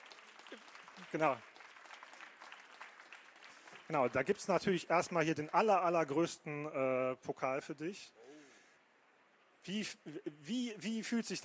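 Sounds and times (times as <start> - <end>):
audience applause: 0.0 - 5.8
speech: 0.5 - 1.5, 3.9 - 8.2, 9.6 - 11.4.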